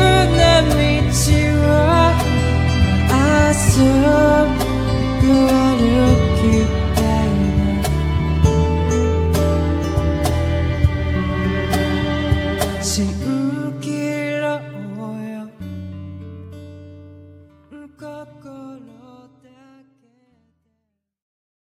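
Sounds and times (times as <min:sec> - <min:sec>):
melody: 0:00.0 - 0:13.6.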